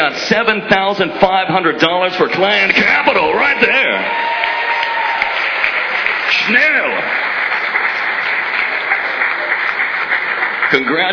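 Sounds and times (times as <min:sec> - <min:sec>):
speech: 0:00.3 - 0:04.2, 0:06.5 - 0:07.2, 0:10.7 - 0:11.1
audience applause at the QuakeCon 2002 prize ceremony: 0:03.3 - 0:11.1.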